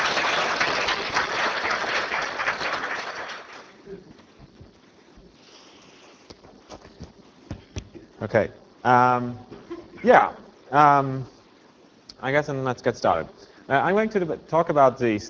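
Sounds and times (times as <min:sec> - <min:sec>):
crowd applauding: 0:00.0 - 0:03.8
speech: 0:08.2 - 0:11.4, 0:12.2 - 0:15.2.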